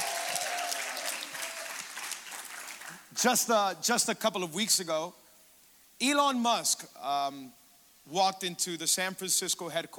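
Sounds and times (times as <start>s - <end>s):
Calvary church congregation clapping during a worship service: 0.0s - 3.1s
speech: 3.2s - 5.2s, 6.0s - 9.9s.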